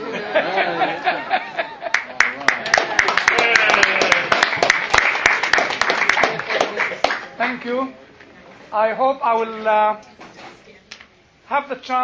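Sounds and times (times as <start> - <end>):
laughter: 0.0 - 4.6, 5.8 - 7.4
speech: 0.4 - 0.9, 7.5 - 8.1, 8.7 - 10.1, 11.5 - 12.0
audience applause: 1.9 - 7.6.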